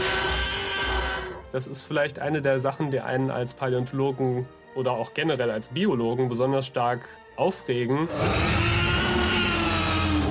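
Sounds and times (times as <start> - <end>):
movie Tyrannosaurus rex roar: 0.0 - 1.4, 8.1 - 10.2
speech: 1.5 - 8.8.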